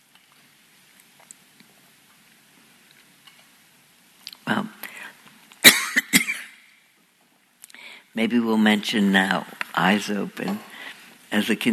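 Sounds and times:
person coughing from a tickle in the throat: 5.6s - 6.6s
speech: 8.2s - 10.7s, 11.3s - 11.7s.

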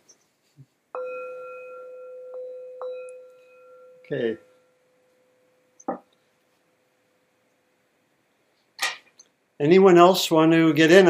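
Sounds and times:
bell being rung: 1.0s - 5.7s
speech: 4.1s - 4.5s, 9.6s - 11.0s.

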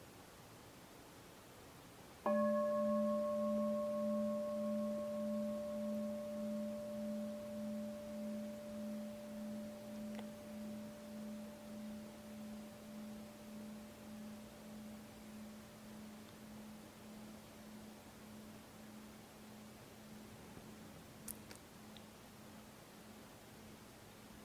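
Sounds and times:
meditation bell struck and ringing: 2.3s - 17.9s.

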